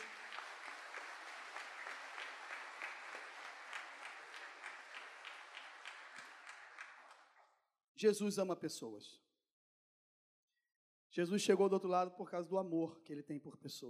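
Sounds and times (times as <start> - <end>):
audience applause: 0.0 - 7.4
speech: 8.0 - 9.3, 11.2 - 13.8.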